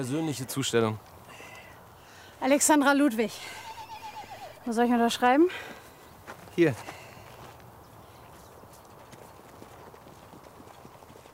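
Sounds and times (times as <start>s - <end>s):
speech: 0.0s - 1.2s, 2.4s - 3.6s, 4.6s - 5.8s, 6.6s - 7.0s
racehorse hooves trotting on a hard track: 3.4s - 11.3s.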